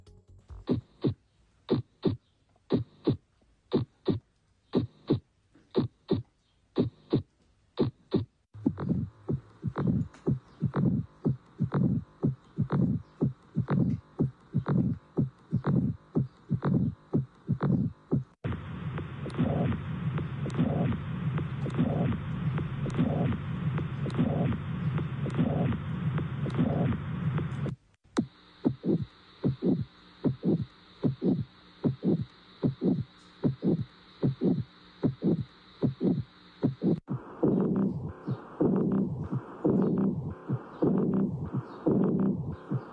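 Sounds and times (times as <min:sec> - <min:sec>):
recorded heart sounds thumping for diagnosis: 0:00.5 - 0:42.9
continuous whooshing noise in heart recording: 0:08.6 - 0:27.8, 0:28.7 - 0:42.9.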